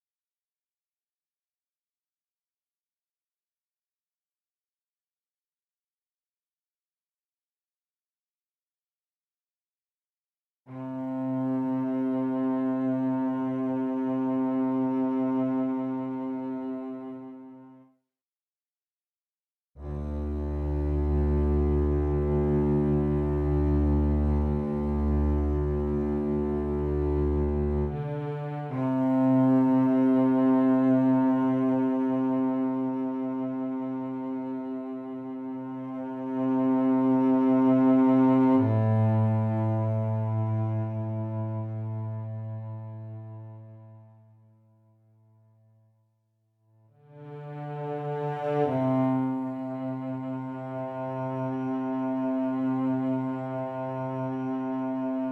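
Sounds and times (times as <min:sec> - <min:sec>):
viola: 0:10.7 - 0:17.9, 0:19.8 - 0:44.6, 0:47.0 - 0:55.2.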